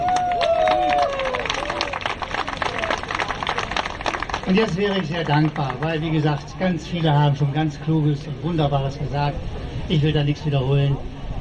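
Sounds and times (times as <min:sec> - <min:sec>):
audience applause: 0:00.0 - 0:07.2
speech: 0:04.5 - 0:11.1.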